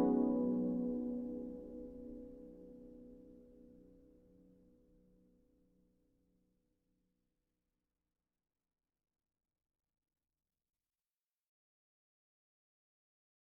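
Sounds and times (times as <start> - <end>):
harp: 0.0 - 2.2.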